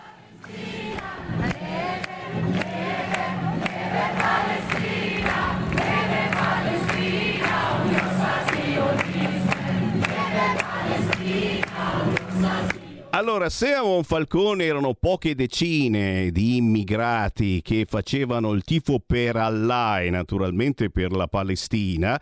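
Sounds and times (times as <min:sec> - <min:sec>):
crowd of thousands chanting in unison: 0:00.0 - 0:13.2
speech: 0:13.2 - 0:22.2.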